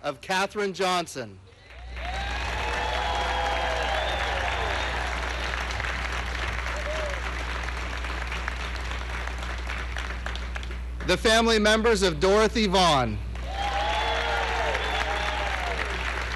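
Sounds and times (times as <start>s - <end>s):
speech: 0.0s - 1.5s, 11.1s - 13.3s
large audience applause: 1.6s - 10.8s, 13.4s - 16.3s
cheers and whistles: 1.7s - 5.8s, 6.6s - 7.4s, 13.4s - 16.3s.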